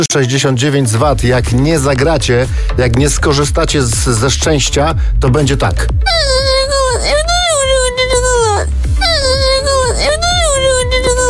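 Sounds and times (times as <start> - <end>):
speech: 0.0 - 6.3
person crying and sobbing: 6.0 - 11.2.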